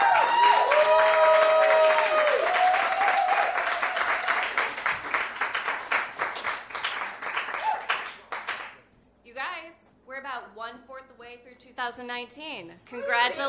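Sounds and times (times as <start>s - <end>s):
audience applause for performer: 0.0s - 8.8s
speech: 11.9s - 13.4s.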